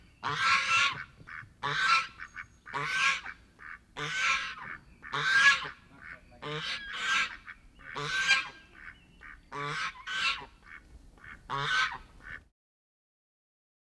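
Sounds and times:
geese honking: 0.2s - 12.4s.

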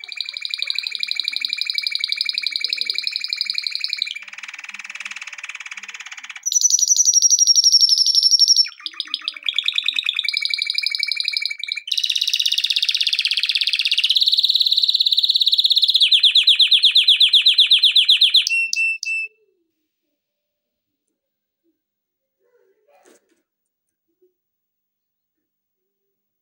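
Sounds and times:
canary singing: 0.0s - 19.7s.

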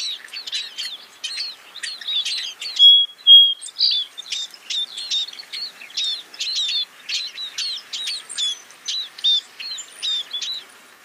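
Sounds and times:
Scaly-breasted munia calls: 1.8s - 10.6s.

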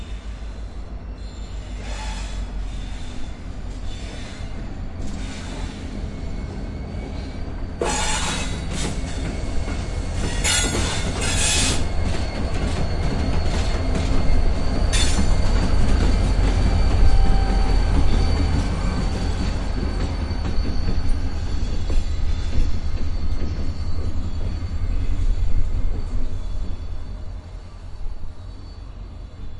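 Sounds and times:
train wheel screeches: 0.0s - 29.5s
train horn: 7.8s - 8.6s, 10.3s - 11.8s.

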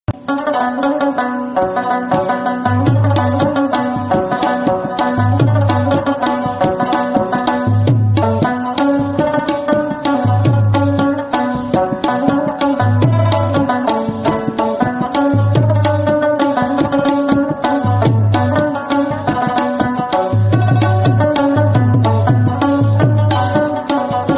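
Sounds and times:
rabab: 0.0s - 24.3s.

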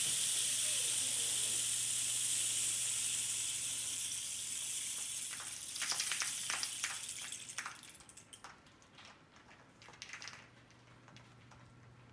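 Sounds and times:
rainsticks: 0.0s - 8.6s.

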